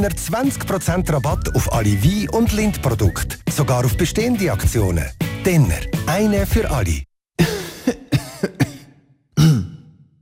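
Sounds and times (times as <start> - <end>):
speech: 0.0 - 7.6
man with a mild cold clearing his throat and coughing: 7.4 - 10.0.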